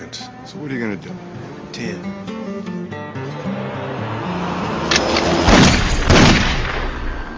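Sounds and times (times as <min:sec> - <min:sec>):
speech: 0:00.1 - 0:03.6
gunshots in a TV drama scene: 0:04.9 - 0:07.2.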